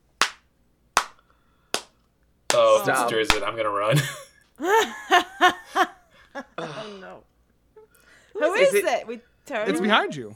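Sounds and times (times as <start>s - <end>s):
slow hand claps imitating applause: 0.2s - 2.7s
speech: 2.6s - 7.3s, 8.4s - 10.3s
laughter: 3.8s - 7.1s.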